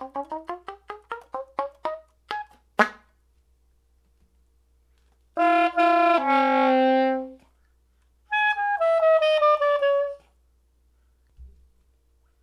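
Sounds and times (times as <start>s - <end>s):
straight soprano saxophone: 5.4s - 7.5s, 8.3s - 10.3s.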